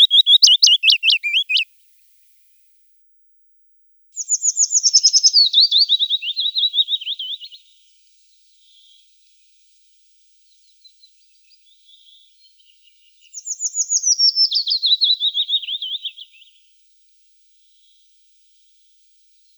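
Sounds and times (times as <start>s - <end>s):
willow warbler singing: 0.0s - 1.7s, 4.2s - 7.7s, 13.2s - 16.5s.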